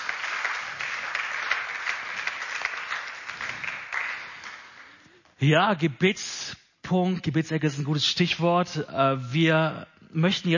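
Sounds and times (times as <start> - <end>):
audience applause: 0.0 - 5.0
speech: 5.4 - 10.5.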